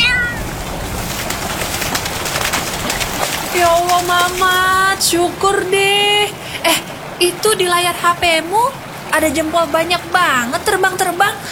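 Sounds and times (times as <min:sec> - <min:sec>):
cat meowing: 0:00.0 - 0:00.5
hiss: 0:00.0 - 0:11.5
speech: 0:03.6 - 0:11.5.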